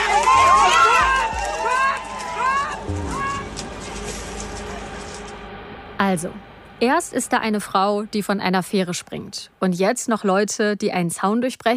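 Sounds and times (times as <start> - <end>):
protesters running: 0.0 - 5.3
protesters pushing through fence: 0.0 - 5.4
speech: 6.1 - 11.7.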